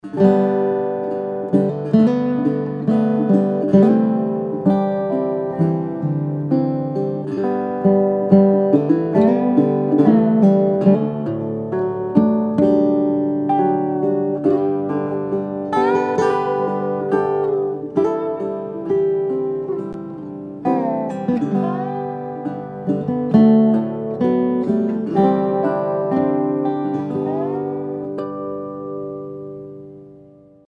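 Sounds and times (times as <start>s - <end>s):
National and Dobro resonator guitars: 0.0s - 30.6s.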